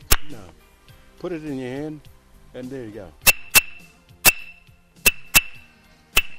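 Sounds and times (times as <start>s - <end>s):
bark rhythm sticks struck together: 0.0s - 0.6s, 3.2s - 6.3s
speech: 0.3s - 0.6s, 1.2s - 3.3s.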